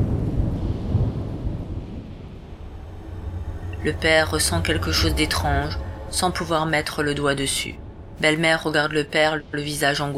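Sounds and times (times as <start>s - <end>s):
thunder clap with echo: 0.0s - 7.2s
speech: 3.8s - 10.1s.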